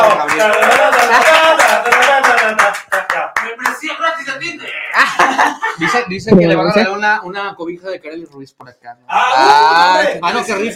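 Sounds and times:
speech: 0:00.0 - 0:01.2, 0:05.8 - 0:10.7
clapping applause: 0:00.0 - 0:04.2
laughter: 0:04.7 - 0:06.2.

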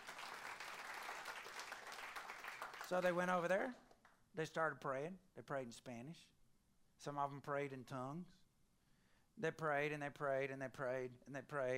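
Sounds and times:
audience clapping: 0:00.0 - 0:04.2
speech: 0:02.9 - 0:03.8, 0:04.4 - 0:06.4, 0:07.0 - 0:08.4, 0:09.4 - 0:11.7.

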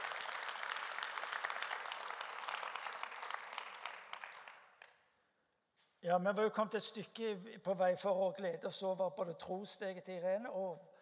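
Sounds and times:
audience applause: 0:00.0 - 0:04.7
speech: 0:06.0 - 0:10.9.

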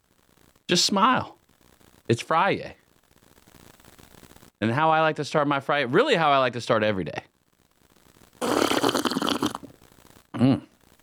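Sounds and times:
speech: 0:00.7 - 0:01.4, 0:02.1 - 0:02.8, 0:04.6 - 0:07.3
person sipping black coffee from a cup: 0:08.4 - 0:09.8.

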